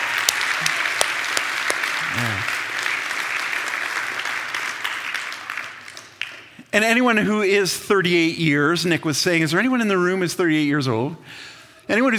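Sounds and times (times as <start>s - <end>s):
audience applauding: 0.0s - 6.5s
person calling out: 2.1s - 2.5s
speech: 6.8s - 12.1s.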